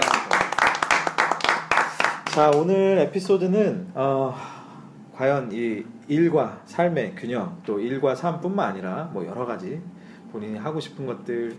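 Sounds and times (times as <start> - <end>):
short round of clapping: 0.0 - 3.4
speech: 2.4 - 4.6, 5.2 - 11.5.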